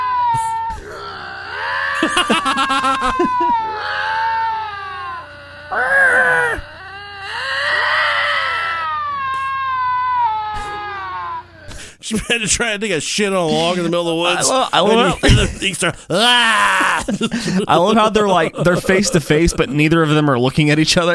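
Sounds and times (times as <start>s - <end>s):
cats growling at each other: 0.0s - 11.5s
laughter: 1.9s - 3.9s, 13.6s - 19.8s
speech: 12.2s - 21.1s.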